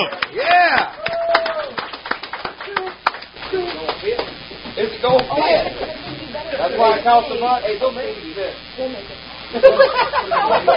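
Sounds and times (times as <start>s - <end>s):
crowd clapping: 0.0s - 4.4s
speech: 6.7s - 10.7s
laughter: 9.5s - 10.7s.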